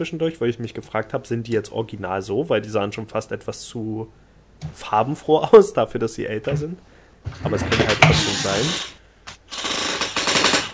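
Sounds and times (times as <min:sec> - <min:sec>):
speech: 0:00.0 - 0:08.9
rough ratcheting creak: 0:07.3 - 0:10.7.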